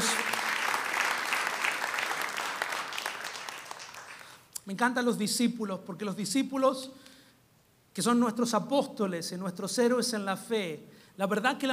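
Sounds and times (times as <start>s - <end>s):
audience applause: 0.0s - 4.4s
speech: 4.7s - 7.1s, 8.0s - 11.7s.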